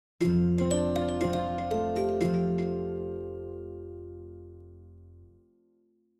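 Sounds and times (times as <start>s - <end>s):
ringtone: 0.5s - 4.2s.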